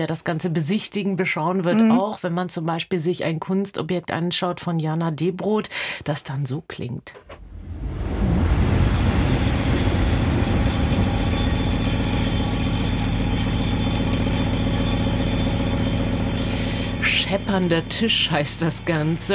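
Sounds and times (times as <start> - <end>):
speech: 0.0 - 7.4, 17.3 - 19.3
train rumbling past: 7.4 - 19.3.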